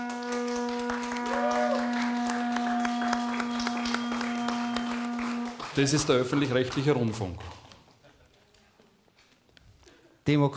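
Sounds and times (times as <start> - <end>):
rising-and-falling whistle-like sound: 0.0 - 5.6
audience clapping: 0.0 - 8.7
speech: 5.8 - 7.6, 10.3 - 10.5.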